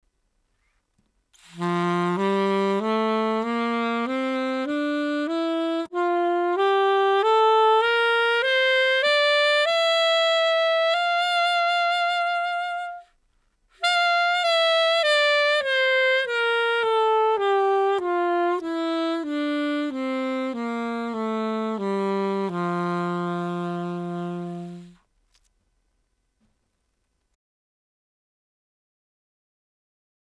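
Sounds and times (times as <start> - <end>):
jazz played on a mouthpiece: 1.4 - 25.0.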